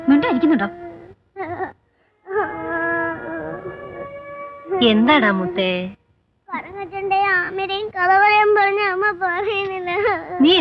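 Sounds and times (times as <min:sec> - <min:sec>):
speech: 0:00.3 - 0:00.8, 0:04.8 - 0:10.6
little girl crying: 0:00.8 - 0:04.8, 0:08.6 - 0:10.6.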